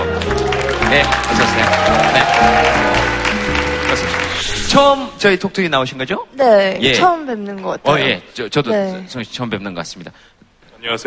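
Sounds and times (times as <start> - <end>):
audience applause: 0.0 - 4.8
speech: 0.9 - 2.9, 3.9 - 11.0.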